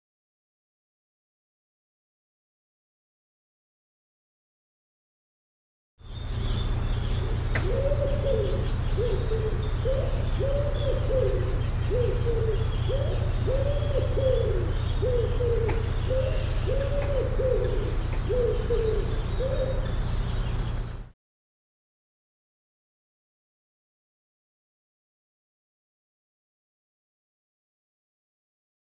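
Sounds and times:
low hooting arched bird calls: 6.0 - 21.1.

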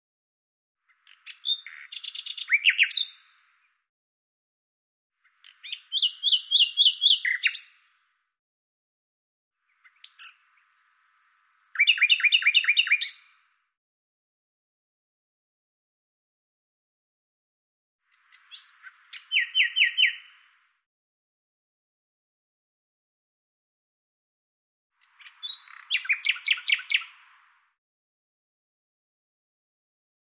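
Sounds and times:
common nightingale singing: 0.9 - 3.4, 5.2 - 7.9, 9.7 - 13.3, 18.1 - 20.5, 25.0 - 27.4.

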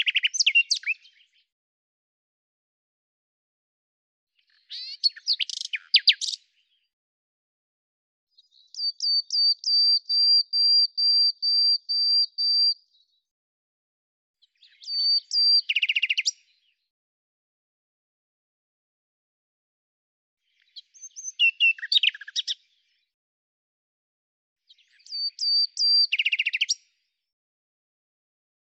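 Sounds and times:
common nightingale singing: 0.0 - 1.3, 4.5 - 6.6, 8.4 - 12.8, 14.5 - 16.5, 20.6 - 22.6, 24.7 - 26.8.

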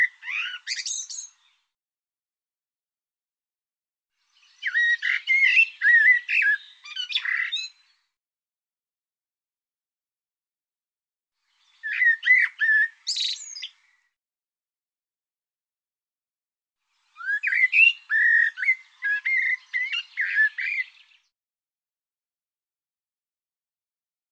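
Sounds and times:
bird song: 0.0 - 1.8, 4.2 - 8.2, 11.4 - 14.2, 16.8 - 21.4.

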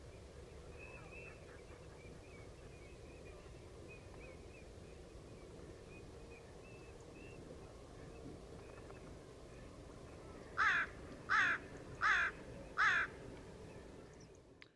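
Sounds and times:
bird harsh caws: 10.6 - 13.2.

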